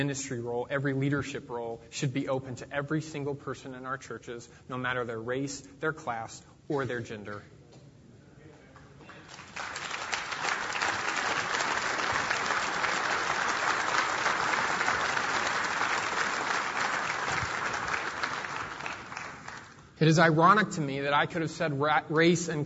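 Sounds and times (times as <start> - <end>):
speech: 0.0 - 7.6, 20.0 - 22.6
large audience applause: 9.1 - 19.8.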